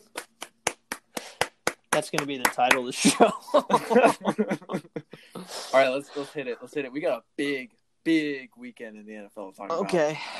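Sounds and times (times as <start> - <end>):
small group clapping: 0.0 - 3.3
speech: 2.0 - 10.3
laughter: 2.9 - 5.4.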